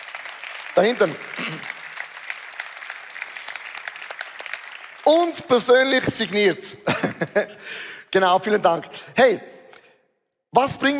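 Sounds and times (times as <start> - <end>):
audience applause: 0.0 - 6.1
speech: 0.8 - 1.7, 5.1 - 9.5, 10.5 - 10.9
laughter: 6.7 - 7.8.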